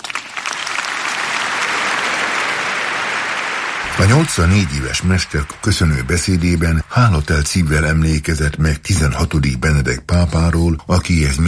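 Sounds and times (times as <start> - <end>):
loud applause from about 5000 attendees filling Paul VI Hall: 0.0 - 8.3
speech: 4.0 - 11.4.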